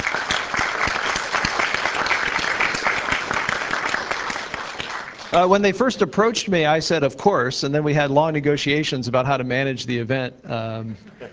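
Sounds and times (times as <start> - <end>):
crowd applause: 0.0 - 5.4
speech: 5.3 - 11.3.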